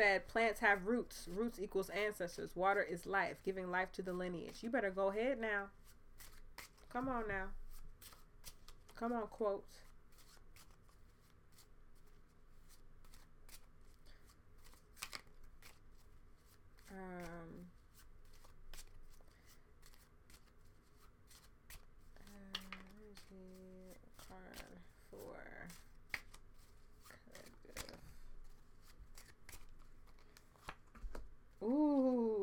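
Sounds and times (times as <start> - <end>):
speech: 0.0 - 7.6, 9.0 - 9.8, 16.9 - 17.8, 31.6 - 32.4
playing cards being shuffled and pulled: 5.8 - 9.0, 9.8 - 32.4.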